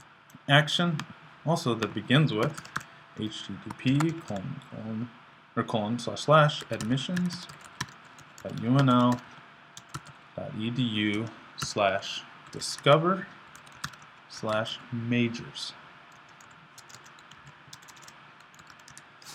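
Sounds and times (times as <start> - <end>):
speech: 0.5 - 7.7, 8.4 - 9.3, 10.4 - 13.4, 14.3 - 15.8
typing on a computer keyboard: 1.8 - 2.9, 3.7 - 4.4, 6.6 - 10.2, 13.5 - 14.6, 16.1 - 19.0.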